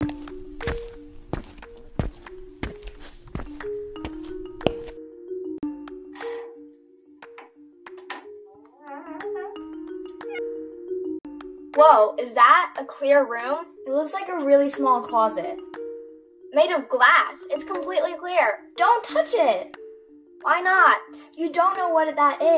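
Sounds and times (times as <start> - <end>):
footsteps walking: 0.0 - 5.0
speech: 11.9 - 15.6, 16.6 - 19.8, 20.4 - 22.5.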